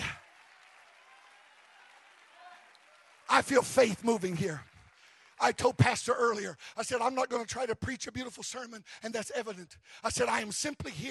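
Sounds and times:
audience clapping: 0.0 - 7.2
speech: 3.3 - 4.7, 5.4 - 11.0.

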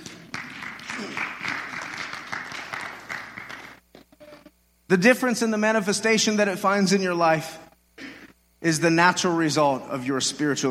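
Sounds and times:
audience applause: 0.0 - 3.8
speech: 4.9 - 7.6, 8.6 - 10.7.

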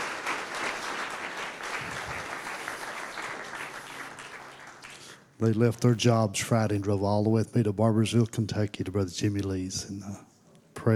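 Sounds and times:
church congregation applauding the worship team: 0.0 - 5.4
speech: 5.4 - 10.9.

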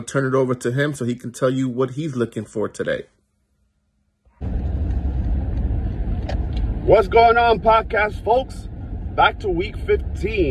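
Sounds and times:
speech: 0.0 - 3.2, 6.9 - 10.4
car being driven, heard from inside: 4.4 - 10.4.

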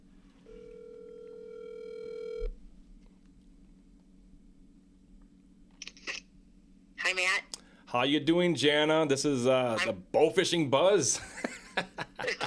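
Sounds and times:
quiet telephone line hiss: 0.4 - 2.5
buzzing telephone dial tone: 0.4 - 2.6
speech: 7.3 - 12.0
laughter: 11.2 - 12.4.

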